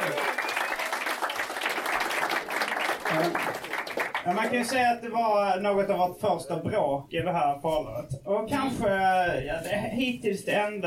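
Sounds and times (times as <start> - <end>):
audience applause: 0.0 - 4.8
speech: 3.2 - 10.8.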